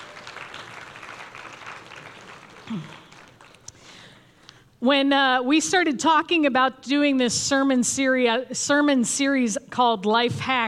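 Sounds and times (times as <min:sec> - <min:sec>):
audience applause: 0:00.0 - 0:03.7
speech: 0:02.7 - 0:03.0, 0:04.8 - 0:10.6.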